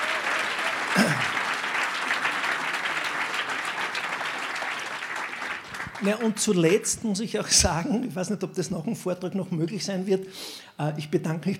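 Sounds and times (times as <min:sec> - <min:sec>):
audience applause: 0:00.0 - 0:06.8
speech: 0:06.0 - 0:11.5.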